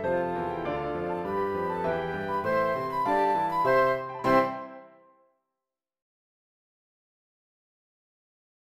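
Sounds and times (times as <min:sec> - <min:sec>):
march music at 100 bpm: 0:00.2 - 0:05.1.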